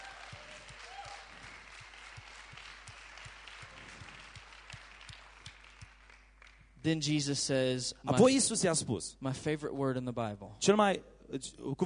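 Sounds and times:
audience applauding: 0.0 - 6.8
speech: 6.8 - 11.8.

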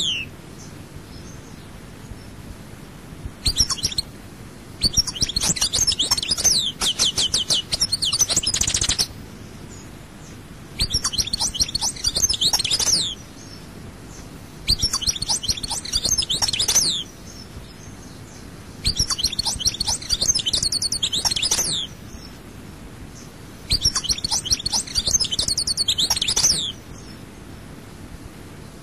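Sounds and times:
European goldfinch twittering: 3.4 - 4.1, 4.8 - 9.1, 10.8 - 13.6, 14.6 - 17.4, 18.8 - 22.2, 23.7 - 27.1.

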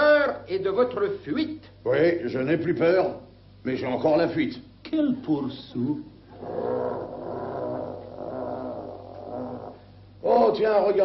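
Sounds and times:
speech: 0.5 - 7.2, 10.2 - 11.0
huge bear growling: 6.3 - 10.0.

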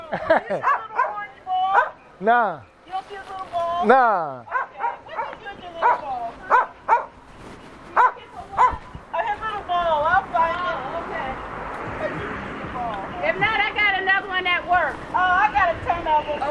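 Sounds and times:
laughter: 0.0 - 0.8
people talking: 0.0 - 6.7, 7.9 - 16.4
dogs barking and whimpering at each other: 0.5 - 2.0, 4.5 - 7.2, 8.0 - 8.8.

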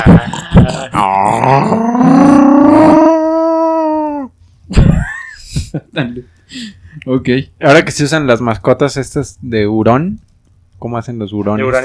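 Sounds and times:
person imitating a bear growl: 0.0 - 4.3
speech: 7.1 - 11.8.

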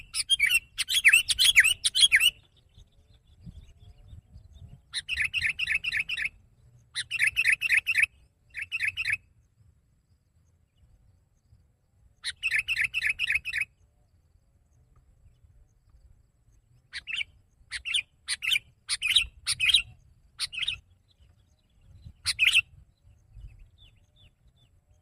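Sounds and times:
sooty-headed bulbul singing: 0.0 - 9.4, 12.2 - 13.9, 16.5 - 24.9.

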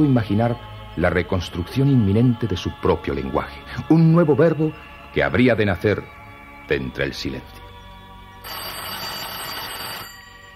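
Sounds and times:
speech: 0.0 - 7.6
telephone ringing with a buzzy high-pitched burst: 8.4 - 10.5.

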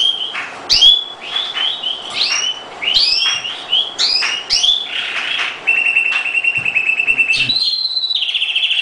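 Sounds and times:
oriental magpie-robin song: 0.0 - 8.8.

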